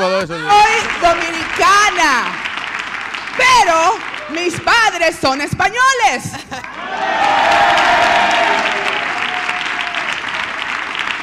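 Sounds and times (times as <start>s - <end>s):
speech: 0.2s - 2.4s, 3.4s - 8.8s
crowd cheering: 0.3s - 5.2s, 6.5s - 11.2s
crowd clapping: 0.3s - 11.2s
crowd laughing: 6.3s - 7.1s.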